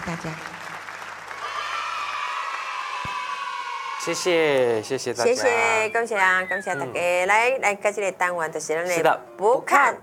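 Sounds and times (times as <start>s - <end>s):
audience applause: 0.0s - 4.0s
speech: 0.1s - 0.6s, 4.0s - 10.0s.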